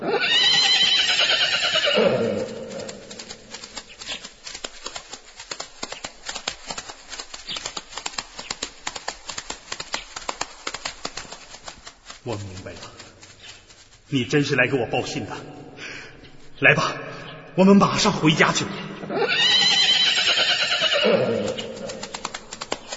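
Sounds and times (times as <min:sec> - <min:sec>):
horse whinnying: 0:00.0 - 0:03.3, 0:19.1 - 0:22.0
horse hoofbeats: 0:00.2 - 0:16.6, 0:19.1 - 0:22.9
speech: 0:12.3 - 0:12.5, 0:14.1 - 0:15.6, 0:16.6 - 0:17.0, 0:17.6 - 0:18.8.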